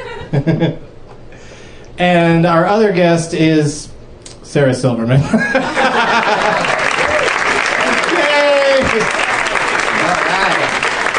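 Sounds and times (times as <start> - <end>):
laughter: 0.0 - 0.9, 5.2 - 10.9
speech: 0.3 - 0.9, 2.0 - 3.9, 4.5 - 6.6
studio audience clapping: 5.8 - 11.1.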